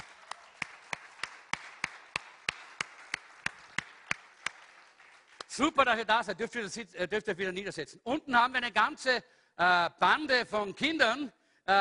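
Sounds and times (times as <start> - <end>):
audience rhythmic unison clapping: 0.0 - 5.8
speech: 5.6 - 11.7.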